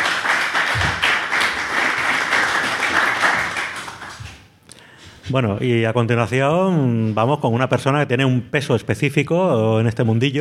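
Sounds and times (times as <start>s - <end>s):
audience applause: 0.0s - 4.3s
speech: 5.3s - 10.3s.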